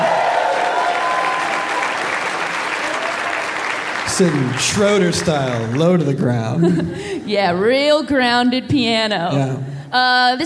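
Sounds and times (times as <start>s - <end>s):
faint whoops: 0.0s - 3.6s
live audience applause: 0.0s - 6.5s
speech: 4.2s - 10.4s.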